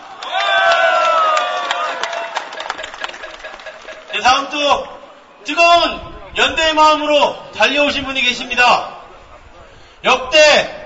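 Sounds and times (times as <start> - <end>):
audience applause: 0.0 - 4.2
speech: 4.4 - 8.9, 10.0 - 10.8.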